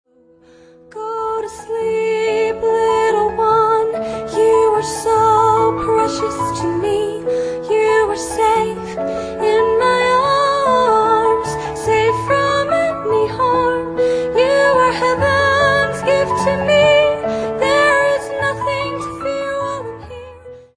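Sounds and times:
lullaby music: 0.4 - 20.7.

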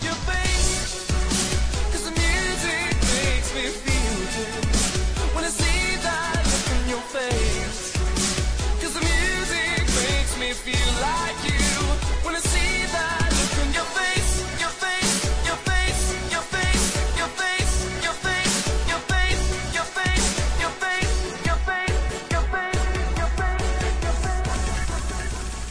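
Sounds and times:
bass boosted 35Hz tone: 0.1 - 25.6.

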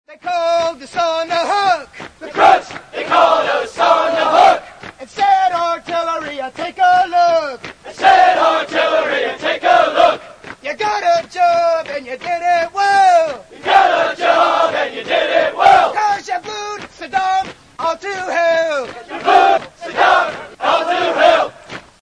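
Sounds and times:
US Marine Corps running cadence chant: 0.2 - 21.9.

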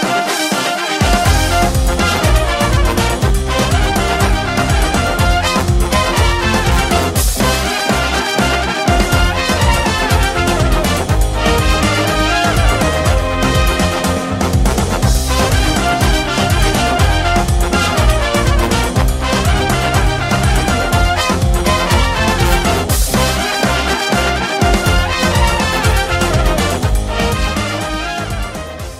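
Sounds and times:
instrumental music: 0.0 - 28.9.

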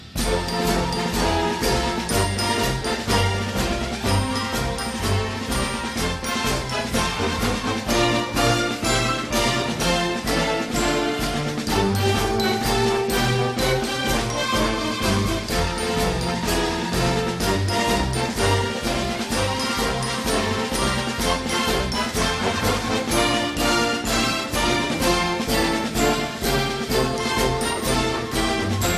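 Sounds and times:
airplane music: 0.0 - 28.9.

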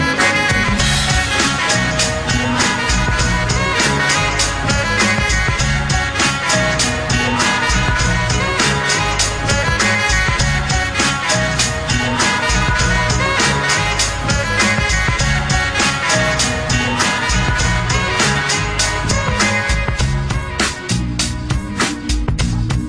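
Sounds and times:
FL Studio sample beat: 0.1 - 22.8.

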